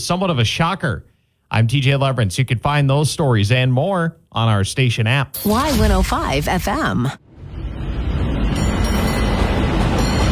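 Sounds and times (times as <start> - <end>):
speech: 0.0 - 7.2
San Francisco cable car rumbling along its track: 7.7 - 10.3.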